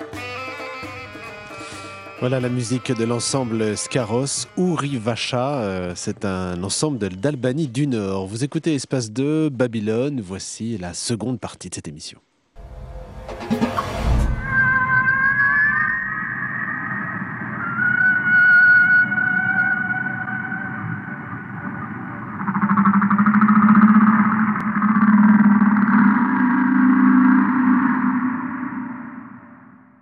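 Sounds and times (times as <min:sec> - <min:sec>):
speech: 0:02.2 - 0:12.3
whale sounds: 0:13.8 - 0:30.0.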